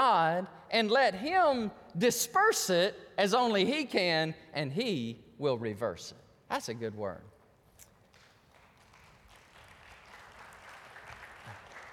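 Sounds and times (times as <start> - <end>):
speech: 0.0 - 7.3
crowd smattering of applause: 8.1 - 11.9.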